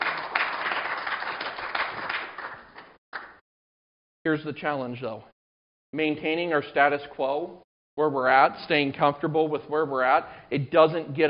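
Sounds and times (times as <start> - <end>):
church congregation clapping during a morning service: 0.0 - 3.4
speech: 4.2 - 5.3, 5.9 - 11.2.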